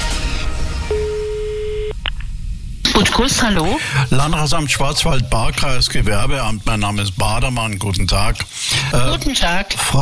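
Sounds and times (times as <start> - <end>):
hum: 0.2 - 10.0
electronic telephone ringing tone: 0.9 - 1.9
speech: 3.0 - 10.0.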